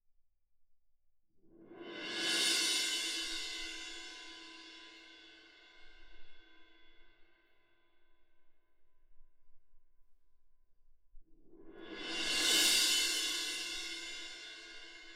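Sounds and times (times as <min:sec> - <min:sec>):
percussion: 0:01.6 - 0:09.7, 0:11.3 - 0:15.1.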